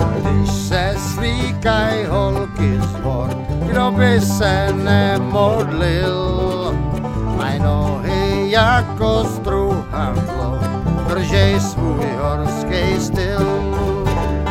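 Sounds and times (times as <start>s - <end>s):
bluegrass lead vocal: 0.2s - 14.4s.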